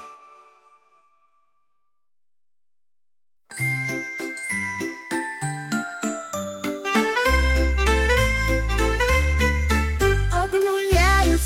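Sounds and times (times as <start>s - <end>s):
bells jingling: 3.5s - 11.3s.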